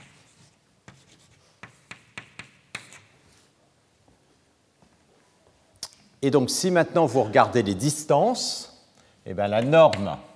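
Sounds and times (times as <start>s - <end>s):
marker or chalk writing strokes on a board: 0.0s - 3.5s
speech: 6.2s - 8.7s, 9.3s - 10.3s.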